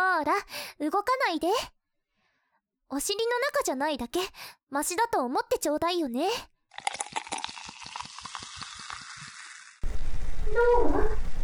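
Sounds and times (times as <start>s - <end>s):
speech: 0.2s - 1.8s, 2.9s - 7.0s, 10.5s - 11.2s
carbonated fizzing in the ear: 6.8s - 11.4s
brief rumble: 9.8s - 11.4s.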